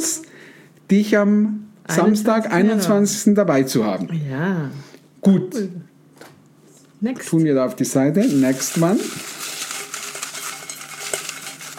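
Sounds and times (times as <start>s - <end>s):
speech: 0.9s - 5.9s, 7.0s - 9.3s
paper draw slips being mixed for a prize draw: 8.2s - 11.7s.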